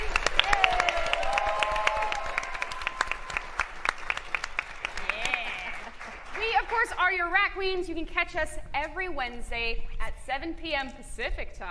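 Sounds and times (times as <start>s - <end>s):
audience applause: 0.0s - 6.9s
speech: 7.6s - 11.6s.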